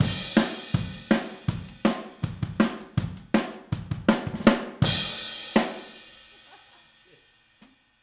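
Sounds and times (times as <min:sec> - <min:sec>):
drums at 162 BPM: 0:00.0 - 0:07.8
laughter: 0:06.3 - 0:07.2.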